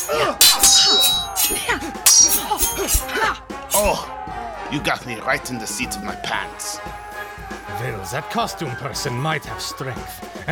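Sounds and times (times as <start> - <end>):
swords clashing in a sword fight: 0.0 - 4.0
speech: 0.1 - 0.8, 2.5 - 10.5.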